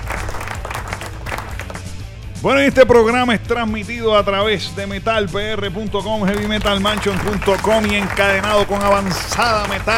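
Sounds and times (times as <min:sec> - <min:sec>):
audience applause: 0:00.0 - 0:01.9, 0:06.3 - 0:09.9
speech: 0:02.4 - 0:09.9.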